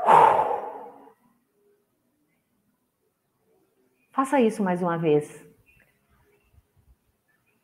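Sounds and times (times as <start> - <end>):
deep breath released through the nose: 0.0 - 1.1
speech: 4.2 - 5.5.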